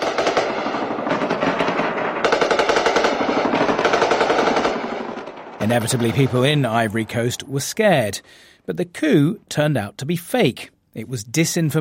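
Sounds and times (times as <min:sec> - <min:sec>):
automatic gunfire in video of coup attack on president of Ivory Coast: 0:00.0 - 0:07.6
speech: 0:05.6 - 0:11.7.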